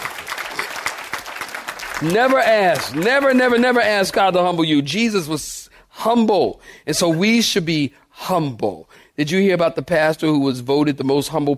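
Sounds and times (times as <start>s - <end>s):
audience clapping hands: 0.0s - 4.5s
speech: 2.0s - 11.5s.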